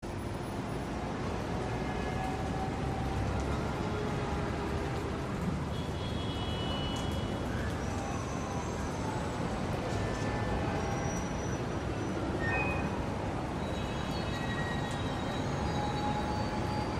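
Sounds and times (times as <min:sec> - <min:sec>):
city night ambience: 0:00.0 - 0:16.9.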